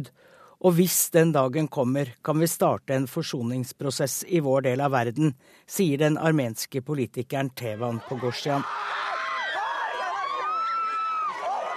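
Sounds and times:
speech: 0.0s - 9.0s
crowd going wild outside a church: 7.8s - 11.7s.

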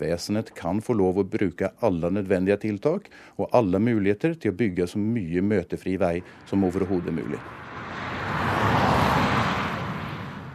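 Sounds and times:
speech: 0.0s - 7.7s
cars speeding past on the E6 motorway in Østfold: 5.4s - 10.5s.

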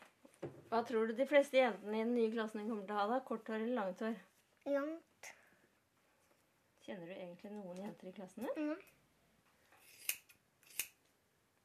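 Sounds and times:
speech: 0.7s - 5.4s, 6.9s - 9.0s
scissors snipping hair: 9.8s - 11.0s.

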